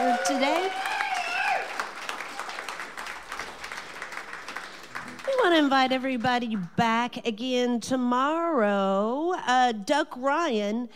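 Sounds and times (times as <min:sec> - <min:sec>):
whistle or cheer: 0:00.0 - 0:01.7
audience applause: 0:00.0 - 0:05.6
speech: 0:05.6 - 0:10.9.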